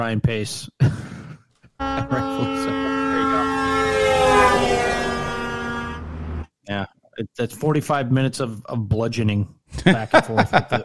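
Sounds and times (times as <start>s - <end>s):
speech: 0.0s - 1.1s, 1.9s - 2.9s, 6.7s - 10.8s
laughter: 1.8s - 4.4s, 9.8s - 10.8s
loud horn blast: 1.8s - 6.4s.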